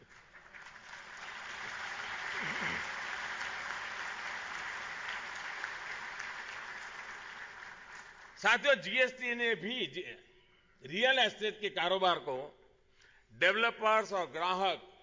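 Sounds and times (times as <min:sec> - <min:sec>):
audience applause: 0:00.0 - 0:08.4
speech: 0:08.4 - 0:12.6, 0:13.3 - 0:14.9.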